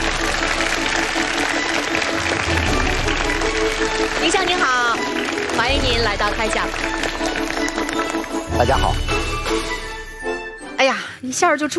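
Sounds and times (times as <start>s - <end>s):
audience applause: 0.0s - 8.9s
speech: 6.1s - 7.2s, 8.6s - 9.8s, 10.8s - 11.7s.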